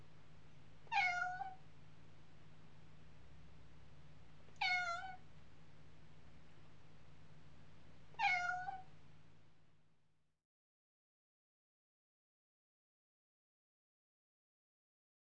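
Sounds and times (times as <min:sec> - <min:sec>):
cat meowing: 0:00.9 - 0:01.6, 0:04.6 - 0:05.2, 0:08.2 - 0:08.9.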